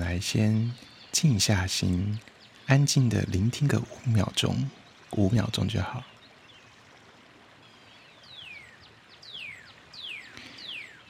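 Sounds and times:
soft hiss: 0.0s - 11.0s
speech: 0.1s - 6.1s
jungle birds calling with descending whistles: 7.7s - 11.0s.

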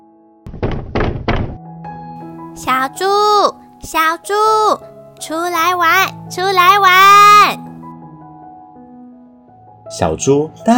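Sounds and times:
knocking on a door: 0.5s - 1.7s
speech: 2.6s - 7.7s, 9.9s - 10.7s.

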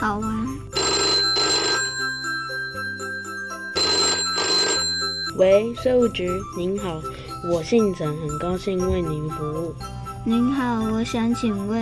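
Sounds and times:
speech: 0.0s - 0.9s, 5.4s - 11.8s
telephone ringing: 0.7s - 5.4s.

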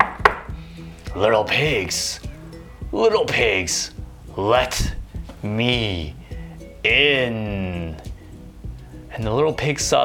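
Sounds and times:
knocking on a door: 0.0s - 0.5s
speech: 1.2s - 2.3s, 2.9s - 6.2s, 6.8s - 8.1s, 9.1s - 10.0s.

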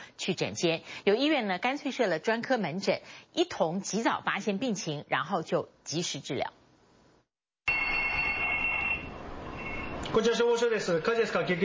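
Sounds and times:
speech: 0.2s - 6.6s, 10.2s - 11.6s
emergency call electronic phone ringing: 7.7s - 10.0s.

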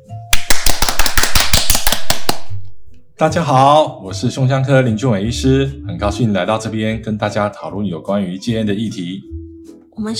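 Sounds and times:
audience applause: 0.4s - 2.4s
speech: 3.2s - 9.4s, 10.0s - 10.1s.

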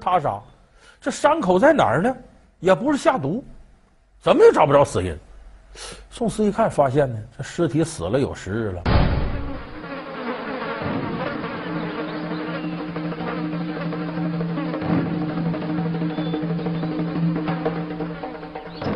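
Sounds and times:
speech: 0.0s - 3.6s, 4.2s - 9.2s
several houseflies buzzing: 8.9s - 18.9s.

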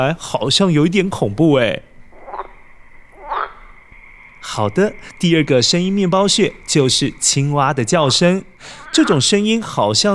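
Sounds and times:
speech: 0.0s - 1.9s, 4.4s - 10.1s
owl hooting: 1.9s - 9.9s.

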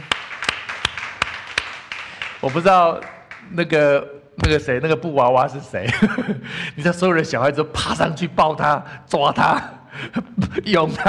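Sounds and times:
people clapping: 0.0s - 3.6s
speech: 2.4s - 11.0s.

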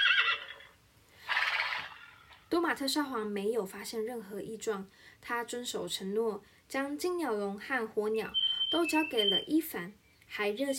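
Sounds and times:
horse whinnying: 0.0s - 2.5s
speech: 2.6s - 10.7s.

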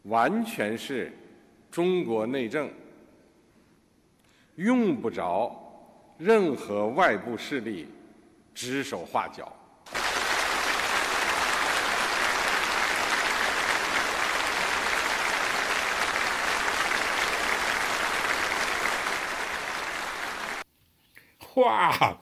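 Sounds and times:
speech: 0.1s - 2.8s, 4.6s - 5.6s, 6.2s - 8.0s, 8.6s - 9.6s, 21.6s - 22.2s
crowd applause: 9.9s - 20.6s.

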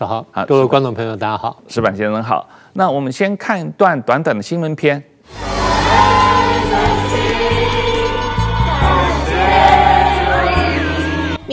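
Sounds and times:
speech: 0.0s - 5.6s
crowd singing in field hospital: 5.3s - 11.5s.

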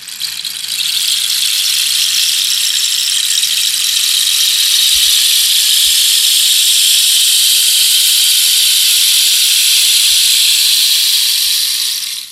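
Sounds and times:
rain stick made of Peruvian cactus: 0.0s - 12.2s.

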